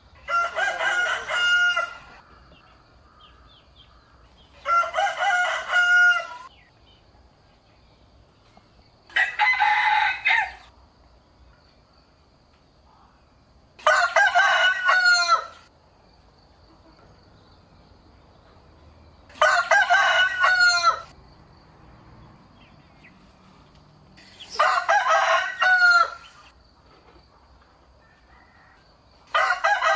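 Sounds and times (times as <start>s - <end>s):
rooster crowing: 0.2s - 3.4s, 4.6s - 6.5s, 9.1s - 10.7s, 13.8s - 15.7s, 19.3s - 21.2s, 24.5s - 26.4s, 28.0s - 29.9s.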